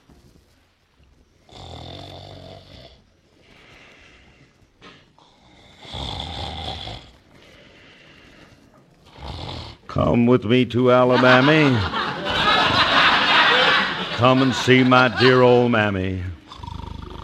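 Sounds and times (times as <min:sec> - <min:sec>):
man snoring loudly in his sleep: 0:01.4 - 0:03.0, 0:05.2 - 0:07.2, 0:09.1 - 0:09.9, 0:16.4 - 0:17.2
speech: 0:10.0 - 0:12.0, 0:14.2 - 0:16.4
laughter: 0:10.8 - 0:16.3.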